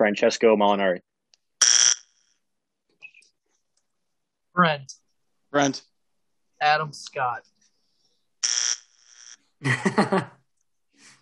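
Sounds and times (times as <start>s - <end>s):
speech: 0.0s - 1.1s, 4.6s - 5.9s, 6.6s - 7.5s, 9.6s - 10.4s
quiz buzzer: 1.6s - 2.4s, 8.4s - 9.5s
laughter: 9.6s - 10.4s.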